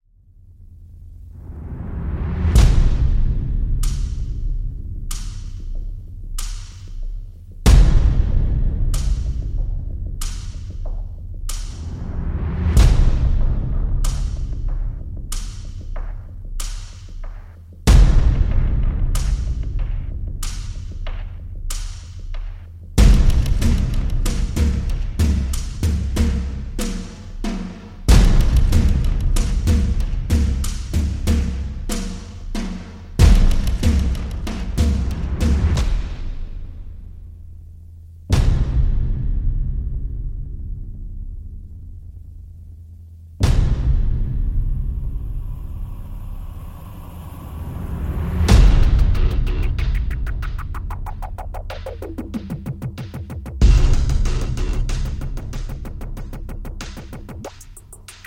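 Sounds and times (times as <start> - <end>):
drums: 1.0 - 58.2.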